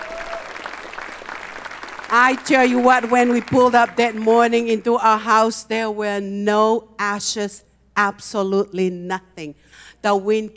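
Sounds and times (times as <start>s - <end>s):
audience clapping hands: 0.0s - 4.5s
speech: 2.1s - 10.5s.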